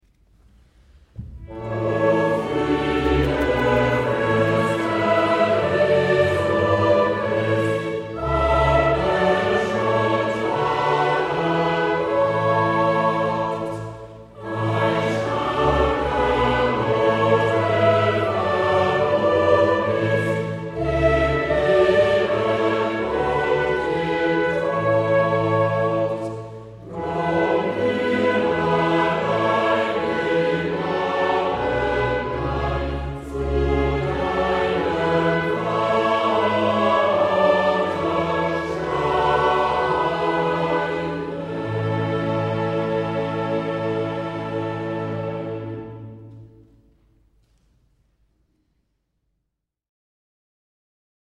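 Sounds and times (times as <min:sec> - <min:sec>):
live choir singing: 0:01.2 - 0:46.9.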